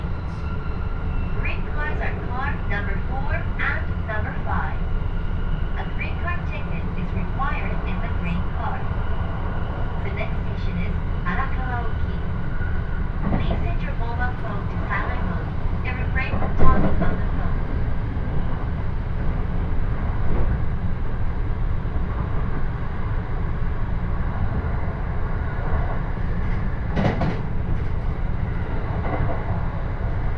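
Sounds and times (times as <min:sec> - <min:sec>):
Joban Line local train rumbling along: 0:00.0 - 0:30.3
voices: 0:01.4 - 0:04.8, 0:05.8 - 0:09.0, 0:10.0 - 0:12.4, 0:13.2 - 0:17.7
constant hum: 0:01.4 - 0:30.3.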